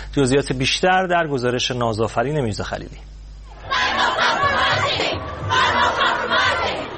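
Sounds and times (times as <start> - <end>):
speech: 0.2 - 3.1
large crowd of young climate protesters chanting in unison: 3.5 - 6.9.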